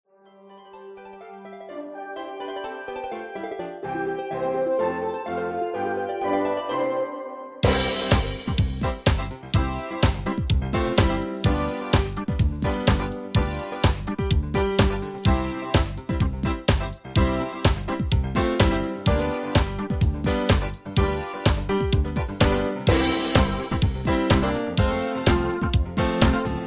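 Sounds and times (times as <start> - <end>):
instrumental music: 0.1 - 26.6.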